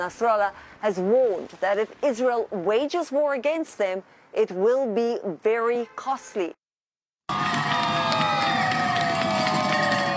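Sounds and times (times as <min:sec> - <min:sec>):
speech: 0:00.0 - 0:06.6, 0:07.3 - 0:07.6
teachers in Newton, Massachusetts cheering the end of their strike: 0:07.3 - 0:10.1.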